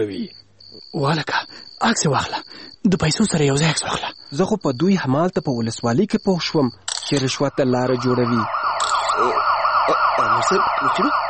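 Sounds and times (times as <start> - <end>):
speech: 0.0 - 8.6, 9.2 - 11.2
police car siren wailing: 7.5 - 11.2.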